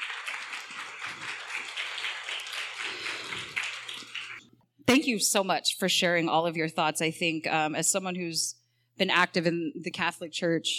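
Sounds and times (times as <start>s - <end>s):
audience applause: 0.0s - 4.4s
speech: 4.9s - 10.7s.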